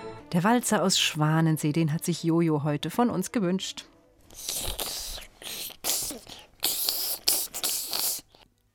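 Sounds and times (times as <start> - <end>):
speech: 0.3 - 4.8
snake hissing: 4.3 - 8.4.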